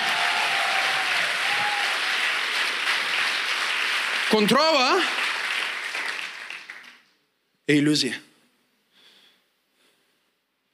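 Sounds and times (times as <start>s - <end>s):
audience applause: 0.0s - 7.1s
speech: 4.3s - 5.2s, 7.7s - 8.3s.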